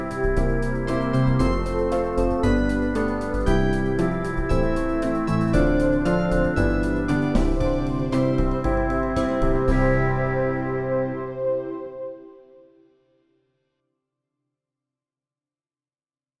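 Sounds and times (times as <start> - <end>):
backing track: 0.0 - 12.4.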